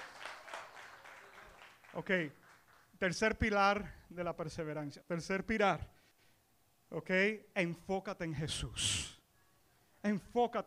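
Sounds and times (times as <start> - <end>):
audience applause: 0.0 - 2.9
speech: 2.0 - 2.4, 3.0 - 6.0, 6.9 - 9.1, 10.0 - 10.6.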